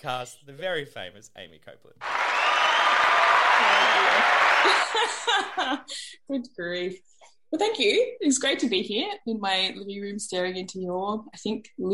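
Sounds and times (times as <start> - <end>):
speech: 0.0 - 11.9
applause sound effect played by podcast host: 2.0 - 5.8
person chuckling: 4.7 - 6.0.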